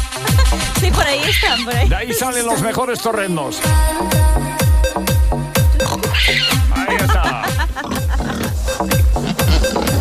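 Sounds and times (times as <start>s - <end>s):
laughter: 0.1s - 2.7s, 6.6s - 9.2s
speech: 0.5s - 4.6s
pig grunting: 5.8s - 9.9s.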